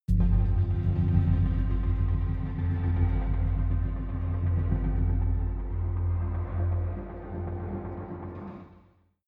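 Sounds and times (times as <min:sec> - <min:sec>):
rhythmic synth drone hits: 0:00.1 - 0:08.6.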